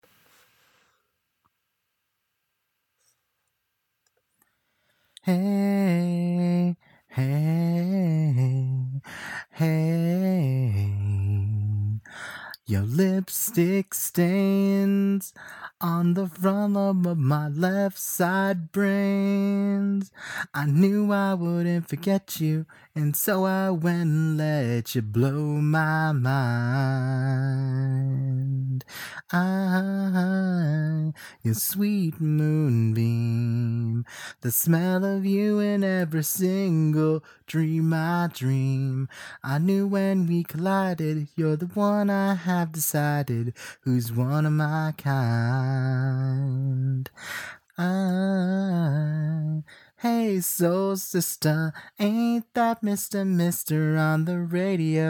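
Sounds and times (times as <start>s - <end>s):
a cappella singing without instruments: 5.2s - 55.0s.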